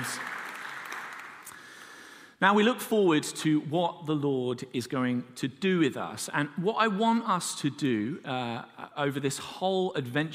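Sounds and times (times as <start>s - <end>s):
audience clapping: 0.0s - 1.7s
speech: 2.4s - 10.3s.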